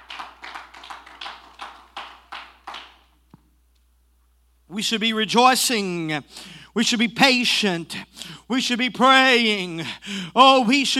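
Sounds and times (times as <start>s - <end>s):
audience clapping: 0.0s - 3.3s
speech: 4.7s - 10.9s.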